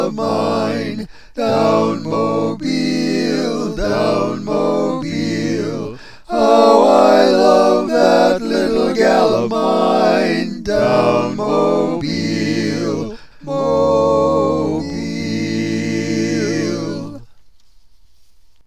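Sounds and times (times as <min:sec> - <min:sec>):
tenor singing barbershop harmony: 0:00.0 - 0:17.2.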